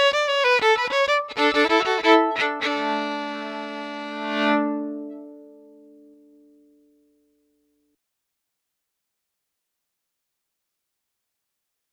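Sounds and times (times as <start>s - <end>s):
violin: 0.0s - 6.6s.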